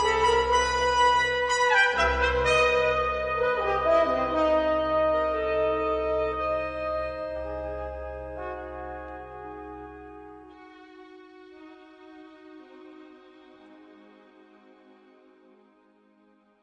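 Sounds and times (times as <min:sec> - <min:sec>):
celebration orchestral music: 0:00.0 - 0:10.5.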